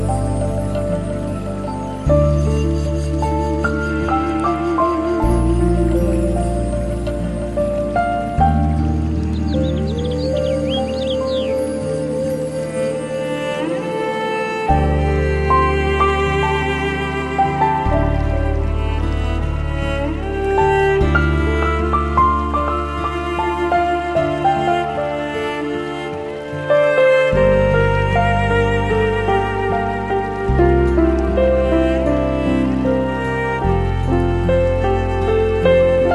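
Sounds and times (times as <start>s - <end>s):
Japanese music: 0.0s - 36.1s
stream flowing: 0.0s - 36.1s
birds: 7.7s - 12.9s.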